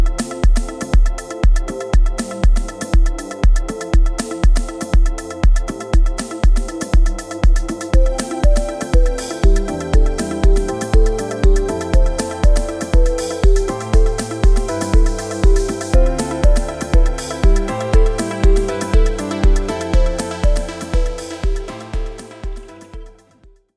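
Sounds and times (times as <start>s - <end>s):
Afro house DJ mix: 0.0s - 23.2s.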